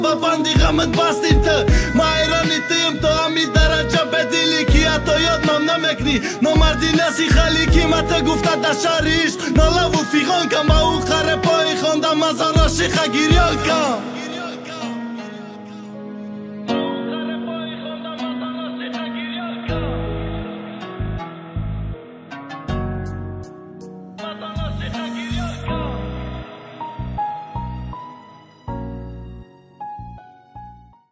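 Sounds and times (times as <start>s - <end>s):
rap music: 0.0s - 16.0s, 16.7s - 21.6s, 24.2s - 28.1s.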